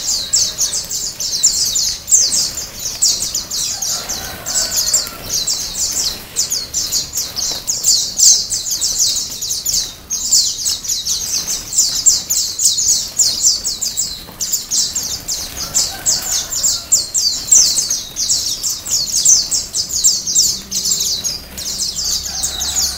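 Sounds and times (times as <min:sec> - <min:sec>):
White-eye twittering: 0:00.0 - 0:22.9.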